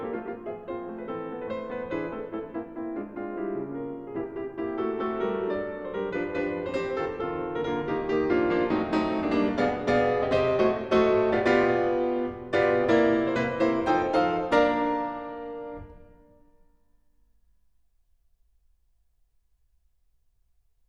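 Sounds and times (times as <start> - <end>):
piano suite: 0.0 - 16.7.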